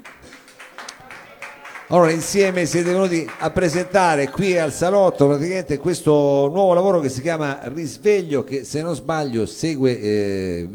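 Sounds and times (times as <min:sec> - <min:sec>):
applause: 0:00.0 - 0:05.4
laughter: 0:00.0 - 0:08.6
speech: 0:01.9 - 0:10.7.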